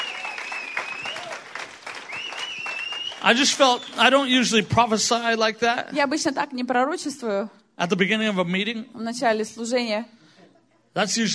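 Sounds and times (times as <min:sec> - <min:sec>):
audience applause: 0:00.0 - 0:04.6
speech: 0:03.2 - 0:10.2, 0:11.0 - 0:11.3.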